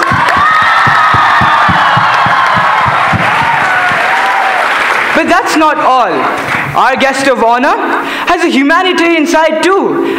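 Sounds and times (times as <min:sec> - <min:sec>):
students cheering and whooping: 0:00.0 - 0:05.1
large crowd of students clapping: 0:00.0 - 0:05.4, 0:06.3 - 0:06.8
speech: 0:05.2 - 0:10.1.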